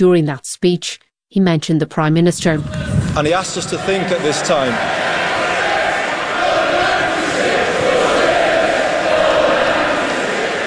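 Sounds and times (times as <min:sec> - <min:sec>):
speech: 0:00.0 - 0:05.4
crowd chanting for justice: 0:02.5 - 0:10.6.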